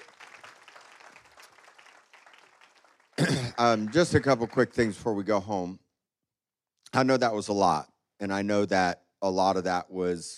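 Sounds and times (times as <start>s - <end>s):
crowd applauding: 0.0s - 5.2s
speech: 3.6s - 5.8s, 7.0s - 10.3s.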